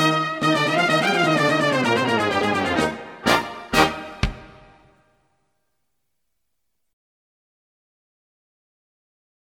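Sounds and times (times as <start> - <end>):
brass band instrumental: 0.0 - 5.0.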